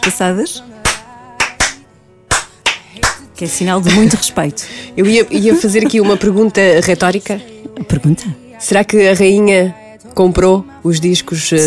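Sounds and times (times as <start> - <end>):
hand claps: 0.0 - 0.2, 0.8 - 3.3
speech: 0.0 - 0.8, 3.4 - 11.6
laughter: 5.0 - 7.0.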